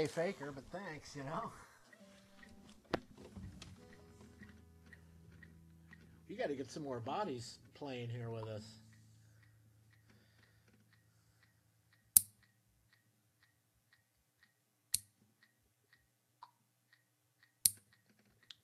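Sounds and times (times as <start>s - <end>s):
speech: 0.0s - 1.7s, 6.3s - 8.8s
faint steady ticking: 0.0s - 18.6s
fingernails being trimmed with clippers: 12.1s - 12.4s.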